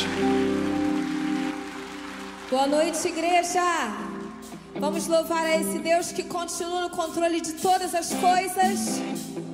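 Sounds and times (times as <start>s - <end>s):
audience applauding loudly: 0.0s - 4.4s
speech: 2.5s - 9.4s.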